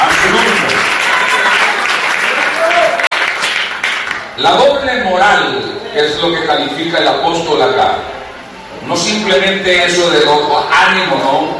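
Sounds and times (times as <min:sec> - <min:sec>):
audience applause: 0:00.0 - 0:04.4
speech: 0:04.4 - 0:08.2, 0:08.8 - 0:11.5.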